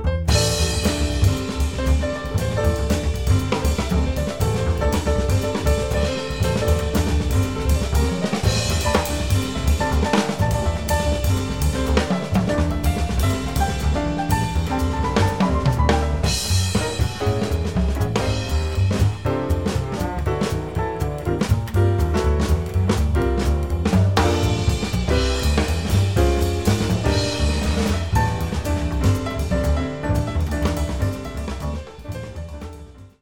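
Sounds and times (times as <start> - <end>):
backing track without melody: 0.1 - 32.6.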